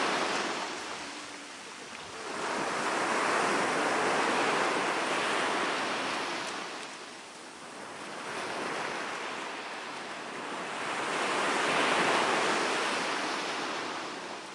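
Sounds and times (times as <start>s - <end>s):
waves crashing onto the shore: 0.0s - 14.5s.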